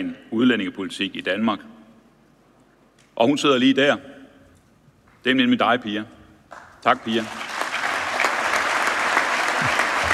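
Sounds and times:
speech: 0:00.0 - 0:01.8, 0:03.2 - 0:04.1, 0:05.2 - 0:06.2, 0:06.8 - 0:07.4
conference audience applause at the 2021 annual meeting: 0:07.2 - 0:10.1.

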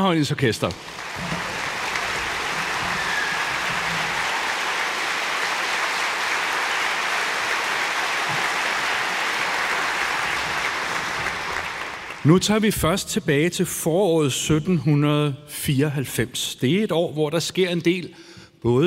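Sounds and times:
speech: 0:00.0 - 0:01.4, 0:12.2 - 0:18.8
audience applause for the orchestra: 0:00.7 - 0:12.4.

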